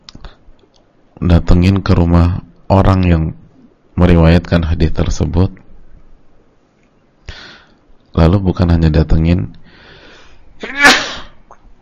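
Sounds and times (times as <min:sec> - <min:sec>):
speech: 0:01.2 - 0:03.4, 0:04.0 - 0:05.6, 0:08.2 - 0:09.6
sneeze: 0:10.6 - 0:11.4.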